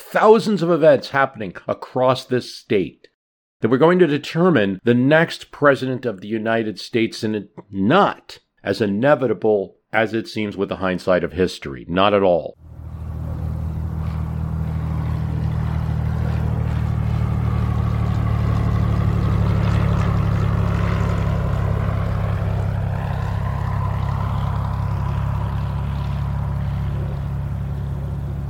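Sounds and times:
speech: 0.1s - 12.7s
small propeller airplane engine droning while rolling along the ground: 12.6s - 28.4s.

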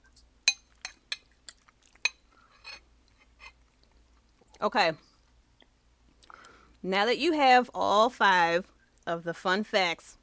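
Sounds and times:
spoon clinking against a dish while eating food: 0.5s - 2.2s
speech: 4.6s - 5.1s, 6.8s - 10.2s.

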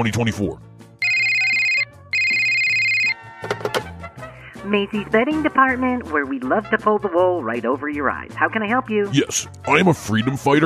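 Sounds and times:
speech: 0.0s - 0.7s, 4.6s - 10.6s
telephone ringing: 1.0s - 3.2s.

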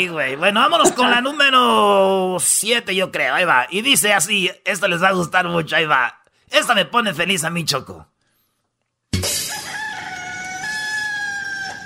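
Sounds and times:
speech: 0.0s - 8.1s
rooster crowing: 9.5s - 11.8s.

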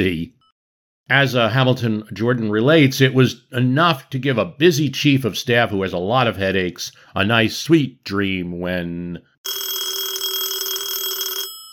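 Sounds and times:
speech: 0.0s - 0.4s, 1.1s - 9.6s
telephone ringing: 9.4s - 11.7s.

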